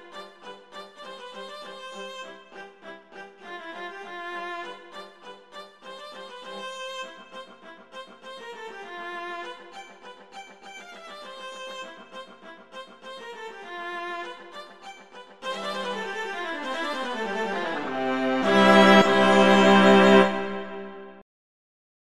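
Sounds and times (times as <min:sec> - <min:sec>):
two cellos playing a duet allegretto: 0:15.5 - 0:21.0.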